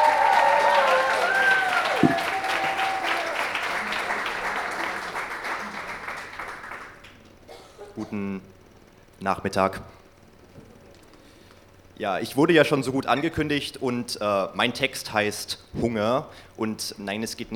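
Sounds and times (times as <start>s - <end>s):
audience applause: 0.0s - 7.2s
speech: 8.1s - 8.5s, 9.2s - 10.0s, 12.0s - 17.5s.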